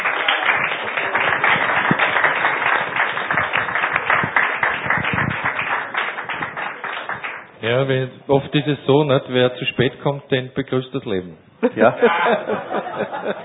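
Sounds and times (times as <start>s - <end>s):
audience clapping greeting a guest's entrance: 0.0s - 7.6s
speech: 7.7s - 13.4s
laughter: 11.6s - 13.4s.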